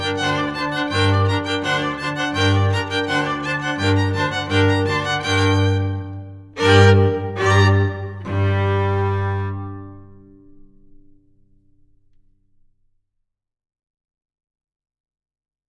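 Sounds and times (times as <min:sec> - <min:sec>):
backing music: 0:00.0 - 0:10.3.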